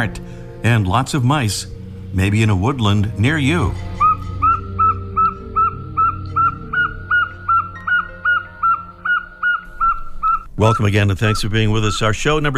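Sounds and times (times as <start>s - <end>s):
speech: 0.0s - 3.9s, 10.6s - 12.5s
northern saw-whet owl call: 3.3s - 12.2s.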